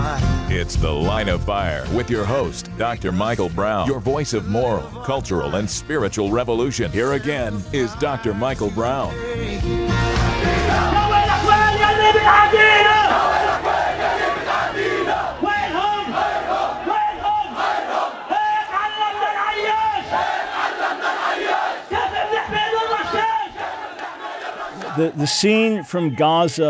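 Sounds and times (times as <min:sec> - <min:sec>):
speech: 0:00.5 - 0:11.0, 0:25.0 - 0:26.6
large crowd chanting loudly in unison: 0:09.3 - 0:25.9.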